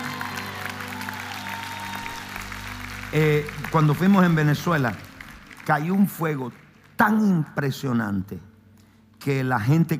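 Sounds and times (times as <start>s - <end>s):
audience applause: 0.0s - 7.3s
speech: 3.1s - 5.0s, 5.6s - 8.5s, 9.2s - 9.9s.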